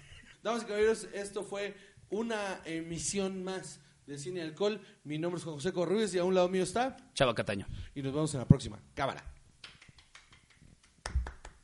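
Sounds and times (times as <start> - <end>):
speech: 0.4 - 9.3
people clapping: 9.6 - 11.6.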